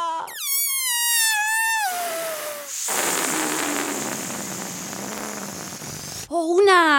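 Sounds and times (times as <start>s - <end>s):
balloon deflating: 0.0s - 6.3s
speech: 6.3s - 6.9s.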